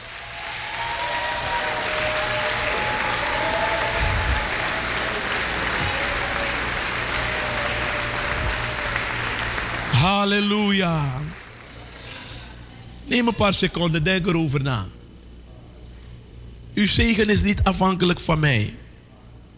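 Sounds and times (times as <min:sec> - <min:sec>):
audience applauding: 0:00.0 - 0:12.3
speech: 0:10.0 - 0:11.2, 0:13.1 - 0:15.0, 0:16.8 - 0:18.8.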